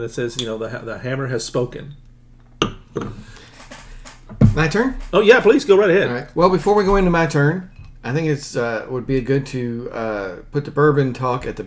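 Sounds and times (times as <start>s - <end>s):
speech: 0.0s - 2.0s, 2.9s - 3.4s, 4.4s - 11.6s
glass clinking: 2.6s - 3.2s.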